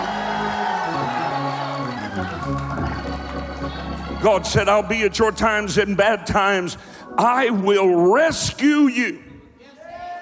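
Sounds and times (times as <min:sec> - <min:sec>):
audience shouting and cheering: 0:00.0 - 0:05.7
speech: 0:04.2 - 0:09.2.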